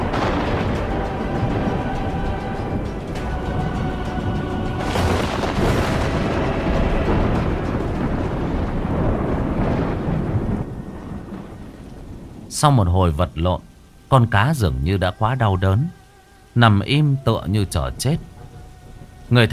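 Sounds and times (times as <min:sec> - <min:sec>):
sharp crackling lightning strike: 0:00.0 - 0:13.7
loud sustained rumble of thunder with roaring wash: 0:00.0 - 0:19.5
speech: 0:12.6 - 0:16.0, 0:16.6 - 0:18.3, 0:19.3 - 0:19.5.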